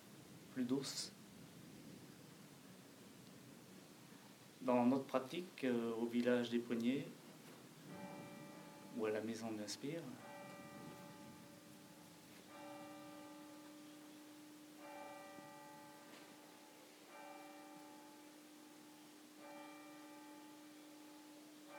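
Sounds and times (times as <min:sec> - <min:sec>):
speech: 0:00.6 - 0:01.2, 0:04.6 - 0:07.2, 0:09.0 - 0:10.3
church bell tolling: 0:07.8 - 0:21.7.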